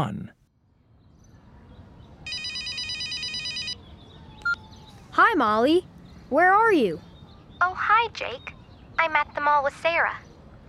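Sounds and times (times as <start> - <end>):
speech: 0.0 - 0.4, 5.2 - 10.3
telephone bell ringing: 2.3 - 3.8.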